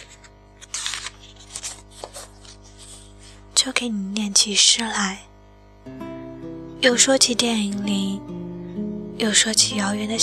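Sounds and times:
book page being turned: 0:00.0 - 0:03.4
speech: 0:03.6 - 0:06.0, 0:06.8 - 0:08.4, 0:09.2 - 0:10.2.

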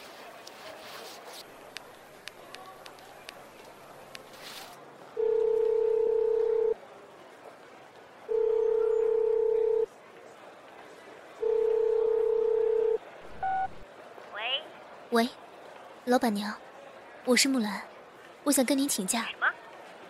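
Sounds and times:
telephone dial tone beeps: 0:05.2 - 0:06.8, 0:08.3 - 0:09.9, 0:11.4 - 0:13.8
speech: 0:15.2 - 0:15.4, 0:16.1 - 0:16.6, 0:17.2 - 0:19.4.

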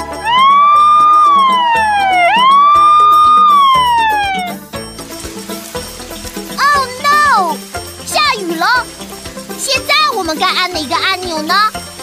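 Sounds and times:
emergency vehicle siren wailing: 0:00.0 - 0:04.7
bouncy music track: 0:00.0 - 0:12.0.

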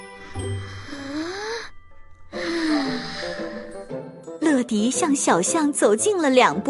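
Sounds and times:
exaggerated deep breath from a cartoon character: 0:00.0 - 0:04.0
speech: 0:04.7 - 0:06.6.

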